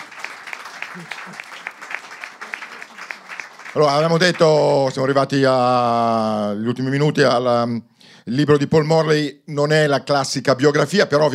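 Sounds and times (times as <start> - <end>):
audience applause: 0.0 - 5.0
speech: 1.0 - 1.6, 3.7 - 11.3.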